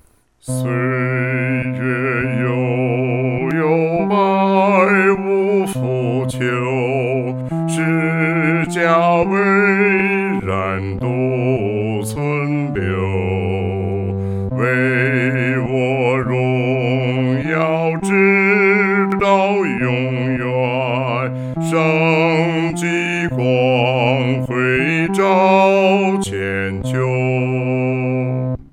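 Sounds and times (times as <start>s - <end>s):
solo singing: 0.4s - 28.5s.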